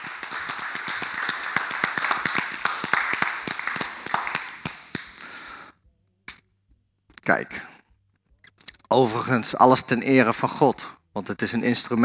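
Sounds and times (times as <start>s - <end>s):
applause: 0.0s - 5.4s
speech: 7.3s - 7.7s, 8.9s - 12.0s.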